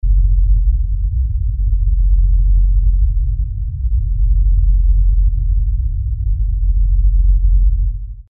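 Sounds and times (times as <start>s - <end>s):
bass: 0.0s - 8.2s.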